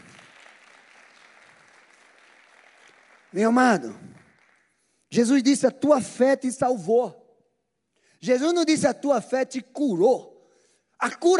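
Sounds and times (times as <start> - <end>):
audience applauding the actors: 0.0 - 4.9
speech: 3.3 - 4.1, 5.1 - 7.2, 8.2 - 10.3, 11.0 - 11.3.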